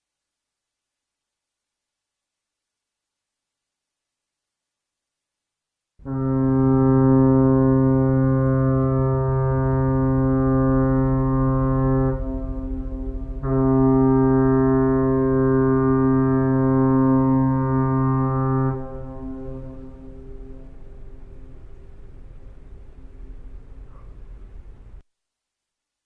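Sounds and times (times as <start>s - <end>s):
fog horn: 6.0s - 23.1s.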